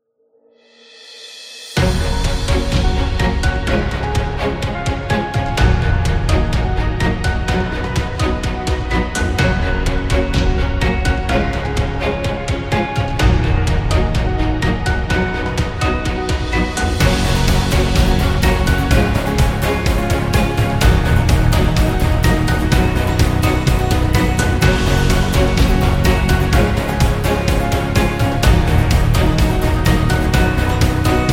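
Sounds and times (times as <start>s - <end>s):
epic corporate music: 1.6s - 31.3s.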